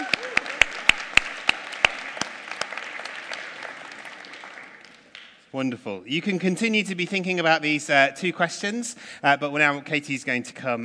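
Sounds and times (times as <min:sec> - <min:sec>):
audience applause: 0:00.0 - 0:05.3
speech: 0:05.5 - 0:10.8.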